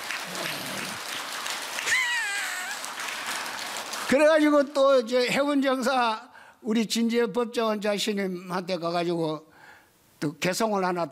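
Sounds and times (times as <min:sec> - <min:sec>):
audience applause: 0:00.0 - 0:04.4
speech: 0:04.1 - 0:09.5, 0:10.2 - 0:11.0.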